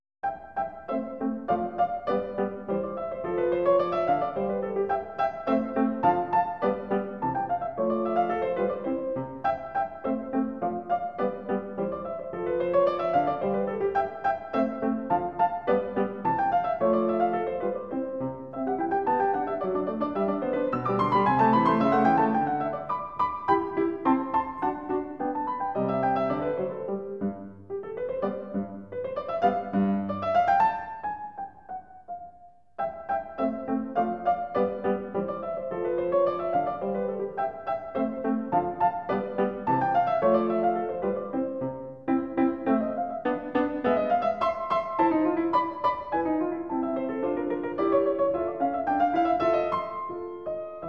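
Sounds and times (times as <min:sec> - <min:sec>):
piano sonata in C major, allegro: 0:00.2 - 0:50.8.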